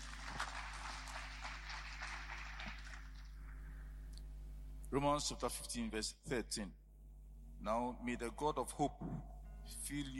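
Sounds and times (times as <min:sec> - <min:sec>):
audience clapping: 0:00.0 - 0:03.6
speech: 0:04.9 - 0:06.8, 0:07.6 - 0:10.1.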